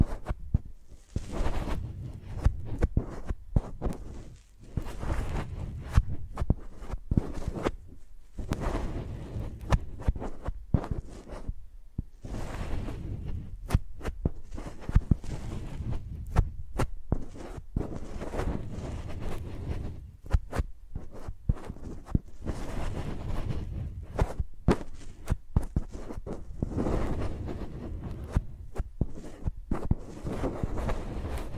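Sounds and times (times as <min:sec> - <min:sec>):
microphones rubbed and scratched like pencils: 0:00.0 - 0:31.5.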